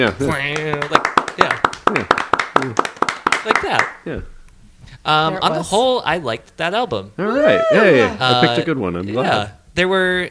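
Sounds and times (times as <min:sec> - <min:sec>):
speech: 0:00.0 - 0:04.3, 0:05.0 - 0:10.2
hand clapping: 0:00.4 - 0:04.0.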